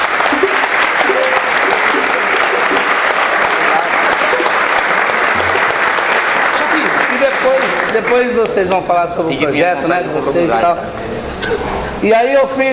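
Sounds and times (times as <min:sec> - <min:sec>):
crowd applauding: 0:00.0 - 0:08.8
speech: 0:08.0 - 0:12.7.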